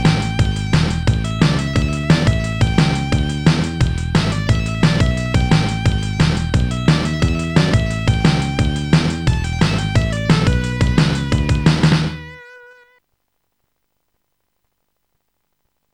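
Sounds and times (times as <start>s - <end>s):
blues mix: 0.0s - 12.6s.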